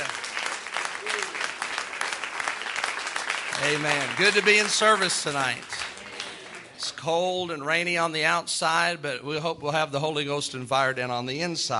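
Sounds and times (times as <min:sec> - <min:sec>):
audience applause: 0:00.0 - 0:06.9
speech: 0:03.6 - 0:05.8, 0:07.0 - 0:11.7.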